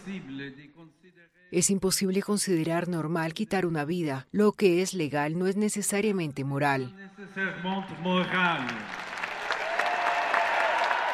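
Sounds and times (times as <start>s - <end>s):
speech: 0.0s - 9.1s
crowd cheering: 7.6s - 11.1s
applause: 7.9s - 11.1s.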